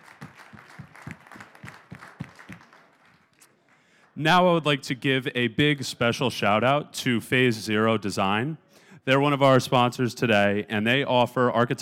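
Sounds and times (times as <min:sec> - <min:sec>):
light applause from a small crowd: 0:00.0 - 0:04.6
speech: 0:04.2 - 0:11.7.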